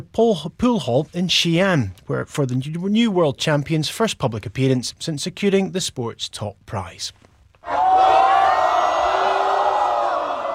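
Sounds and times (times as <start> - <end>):
speech: 0.0 - 7.8
crowd cheering in the TNT pool hall in Xi'an: 7.6 - 10.5.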